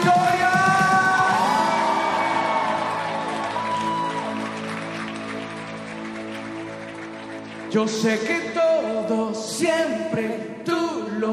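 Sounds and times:
audience clapping and shouting: 0.0s - 9.0s
speech: 7.7s - 11.3s.

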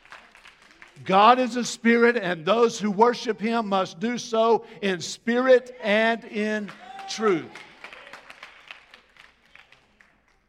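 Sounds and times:
group of people clapping: 0.0s - 1.2s, 6.5s - 10.4s
speech: 1.0s - 7.7s.

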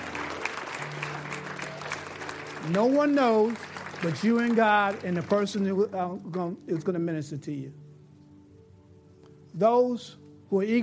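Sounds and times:
audience clapping hands: 0.0s - 6.9s
speech: 2.6s - 7.8s, 9.6s - 10.8s.

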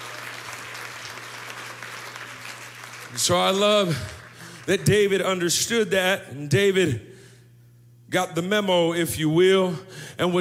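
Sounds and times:
audience clapping: 0.0s - 5.3s
speech: 3.1s - 7.1s, 8.1s - 10.3s.

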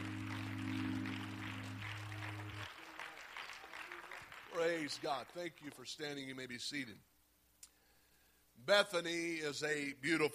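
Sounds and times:
sustained organ or keyboard tones: 0.0s - 2.7s
crowd clapping: 0.0s - 6.0s
speech: 4.6s - 7.1s, 8.6s - 10.3s.

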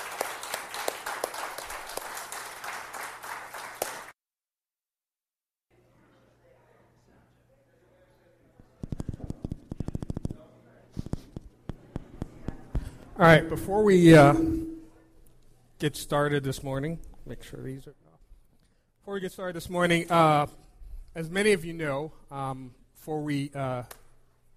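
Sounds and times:
church congregation applauding to welcome new missionaries: 0.0s - 4.1s
speech: 13.2s - 14.6s, 15.8s - 18.0s, 19.1s - 20.6s, 21.2s - 24.0s.

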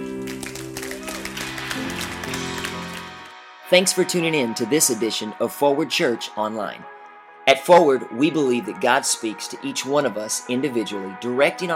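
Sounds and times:
audience applause: 0.0s - 3.4s
sustained musical chords: 0.0s - 11.2s
speech: 3.7s - 11.7s.

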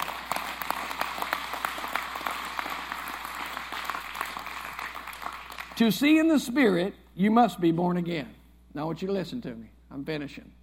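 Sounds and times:
crowd clapping hands: 0.0s - 6.2s
speech: 5.8s - 10.6s.

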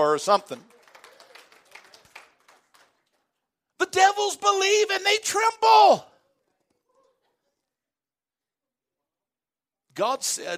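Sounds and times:
speech: 0.0s - 0.8s, 3.9s - 6.1s, 10.0s - 10.5s
sparse hand claps: 0.6s - 3.2s.

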